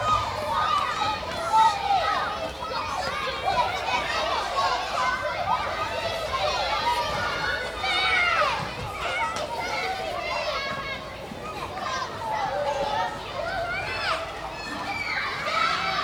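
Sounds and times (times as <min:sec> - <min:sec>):
school playground exterior ambience with people: 0:00.0 - 0:16.0.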